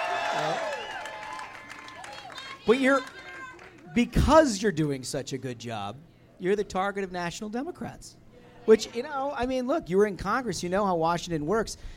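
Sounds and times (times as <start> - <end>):
large crowd cheering: 0.0 - 4.4
speech: 0.4 - 0.7, 2.6 - 3.2, 3.9 - 11.9.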